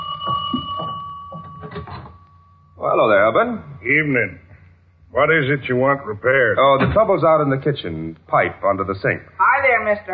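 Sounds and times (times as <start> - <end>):
electric doorbell ringing: 0.0 - 2.8
speech: 2.9 - 4.4, 5.1 - 10.1.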